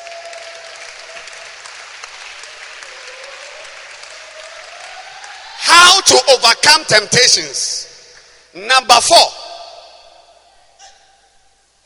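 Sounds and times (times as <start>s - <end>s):
audience clapping hands: 0.0s - 6.9s
speech: 6.0s - 7.8s, 8.6s - 9.4s.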